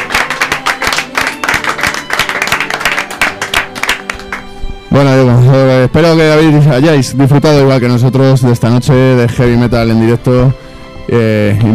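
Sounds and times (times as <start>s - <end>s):
audience applauding: 0.0s - 4.5s
speech: 5.0s - 11.7s.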